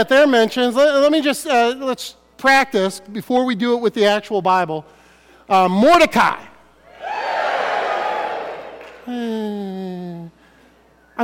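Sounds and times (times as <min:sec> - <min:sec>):
speech: 0:00.0 - 0:06.5, 0:09.1 - 0:09.9
audience booing: 0:06.9 - 0:09.1.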